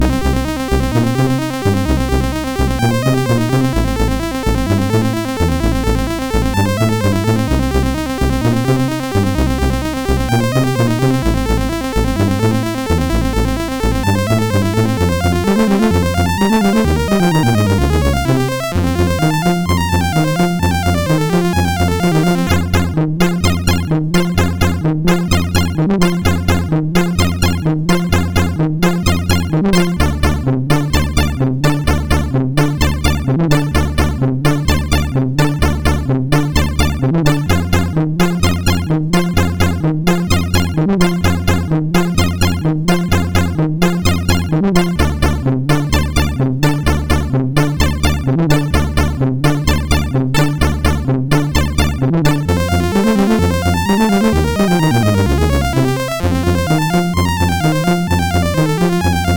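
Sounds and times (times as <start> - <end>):
MOS6581R4 SID chip music: 0.0 - 59.3.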